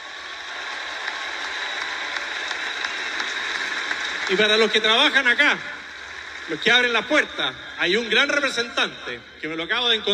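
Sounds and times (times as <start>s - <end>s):
audience applause: 0.0s - 7.6s
speech: 4.3s - 5.7s, 6.5s - 10.1s.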